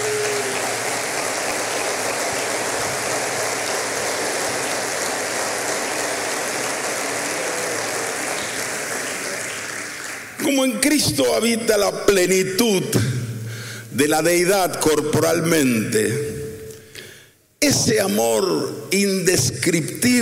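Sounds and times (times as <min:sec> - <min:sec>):
audience applause: 0:00.0 - 0:10.4
speech: 0:10.5 - 0:13.1, 0:14.0 - 0:16.3, 0:17.6 - 0:20.2.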